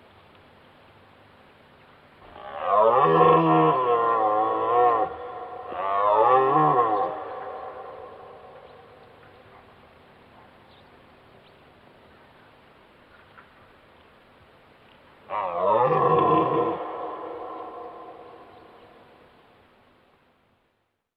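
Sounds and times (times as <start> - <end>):
red deer roaring: 2.2 - 9.3, 15.3 - 19.2.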